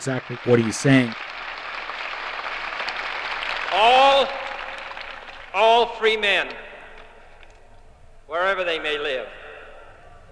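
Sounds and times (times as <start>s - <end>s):
speech: 0.0s - 1.2s, 5.6s - 6.6s, 8.3s - 9.4s
crowd applauding in Berlin: 0.0s - 7.7s.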